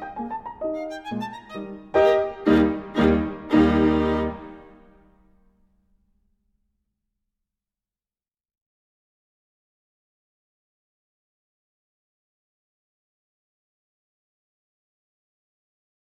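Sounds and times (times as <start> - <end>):
violin sonata in E flat variation: 0.0 - 5.0.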